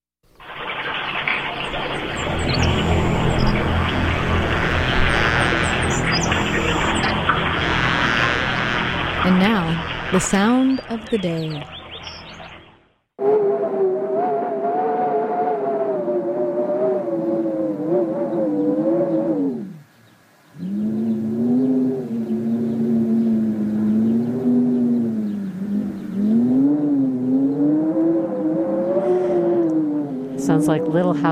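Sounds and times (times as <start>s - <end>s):
wind moaning through cypress trees: 0.3s - 31.3s
speech: 10.1s - 11.8s.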